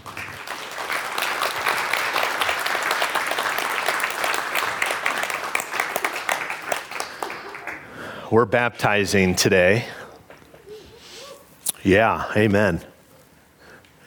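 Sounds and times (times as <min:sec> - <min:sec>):
audience applause: 0:00.0 - 0:08.1
speech: 0:08.3 - 0:10.0, 0:11.8 - 0:12.9.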